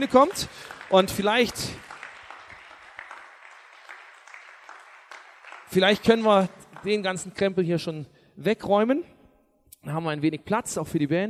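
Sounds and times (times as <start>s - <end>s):
speech: 0.0s - 1.9s, 5.7s - 9.2s, 9.8s - 11.2s
audience clapping: 0.0s - 7.6s.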